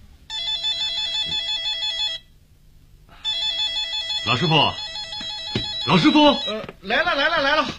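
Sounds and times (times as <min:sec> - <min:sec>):
office desk telephone in a manager's office ringing: 0:00.3 - 0:02.3, 0:03.2 - 0:07.1
speech: 0:04.3 - 0:04.8, 0:05.8 - 0:07.7.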